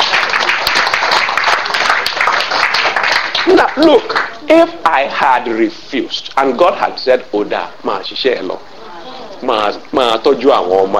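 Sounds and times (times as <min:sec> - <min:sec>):
audience clapping: 0:00.0 - 0:04.4
speech: 0:03.5 - 0:08.7, 0:09.4 - 0:10.9.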